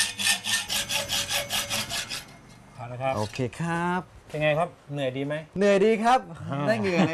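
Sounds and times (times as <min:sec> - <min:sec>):
hand saw cutting a steel bar for a handmade car frame: 0:00.0 - 0:02.6
speech: 0:02.9 - 0:07.1.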